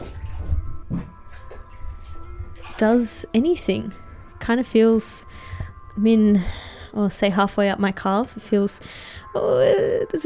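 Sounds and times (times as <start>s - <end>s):
soft splashes: 0.0s - 4.4s
water sloshing in a bathtub as a person climbs in: 0.0s - 7.6s
speech: 2.8s - 10.2s.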